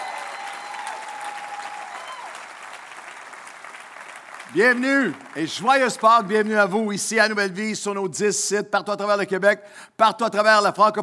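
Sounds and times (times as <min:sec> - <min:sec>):
congregation applauding at an Easter church service: 0:00.0 - 0:07.2
speech: 0:04.5 - 0:11.0.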